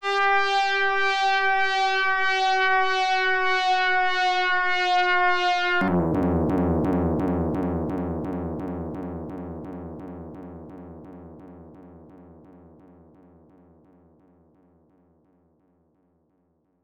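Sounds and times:
siren: 0.0s - 9.6s.

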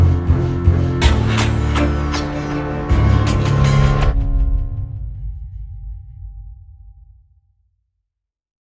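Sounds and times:
cinema thriller orchestral music: 0.0s - 5.2s.

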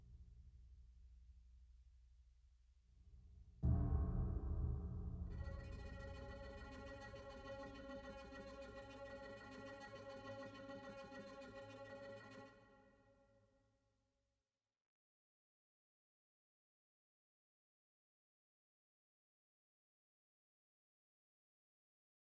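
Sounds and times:
string instrument: 3.6s - 13.2s.

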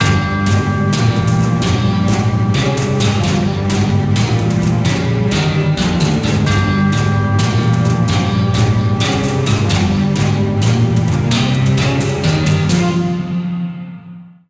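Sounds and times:
panic music loop: 0.0s - 13.2s.

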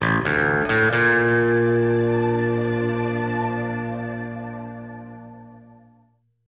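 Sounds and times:
musical flourish: 0.0s - 6.0s.

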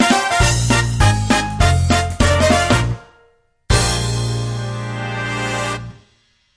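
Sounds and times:
boss clear fanfare: 0.0s - 6.2s.

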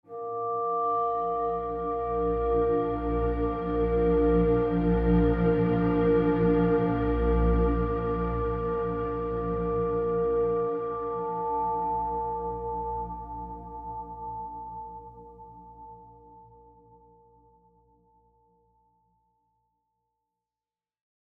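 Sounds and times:
synth pad chords: 0.1s - 16.8s.

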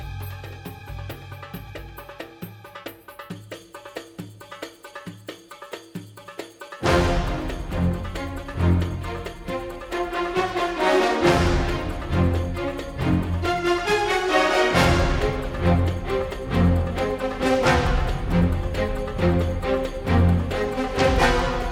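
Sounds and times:
suspense music loop: 6.8s - 21.6s.

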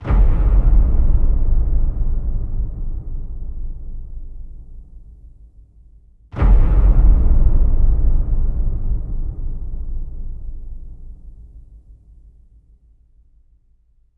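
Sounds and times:
short music cut: 0.0s - 14.1s.

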